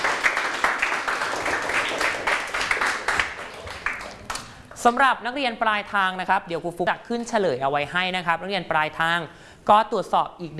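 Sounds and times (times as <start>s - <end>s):
students applauding in a classroom: 0.0s - 4.8s
speech: 4.8s - 10.5s.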